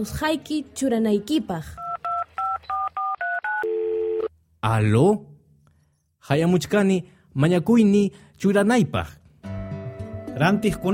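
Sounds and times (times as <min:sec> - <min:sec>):
speech: 0:00.0 - 0:01.8, 0:04.6 - 0:05.3, 0:06.2 - 0:09.2, 0:10.4 - 0:10.9
steady lower continuous telephone tone: 0:01.8 - 0:04.3
telephone keypad dialing beeps calling the bank: 0:01.8 - 0:04.3.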